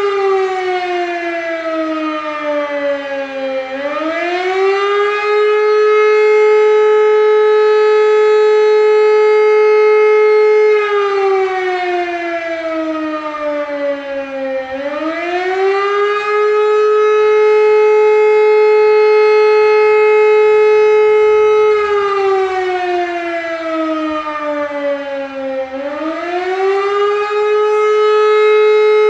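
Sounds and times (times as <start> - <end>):
siren alarm: 0.0 - 29.0.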